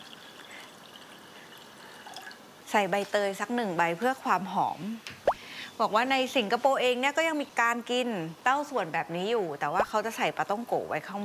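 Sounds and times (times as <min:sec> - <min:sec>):
plain water poured into a sticky liquid mixture for a steamed mung bean dish: 0:00.0 - 0:04.0
speech: 0:02.7 - 0:05.2, 0:05.8 - 0:11.2.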